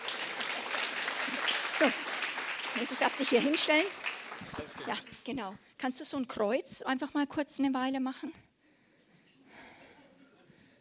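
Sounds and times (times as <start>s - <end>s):
audience applause: 0.0s - 5.2s
speech: 1.8s - 2.1s, 2.8s - 8.5s.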